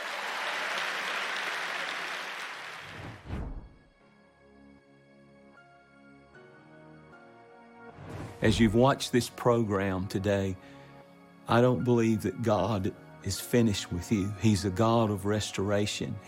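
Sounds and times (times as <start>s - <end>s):
audience clapping hands: 0.0s - 3.3s
soft sustained music with steady chord tones: 3.8s - 16.2s
speech: 8.4s - 10.8s, 11.5s - 16.2s.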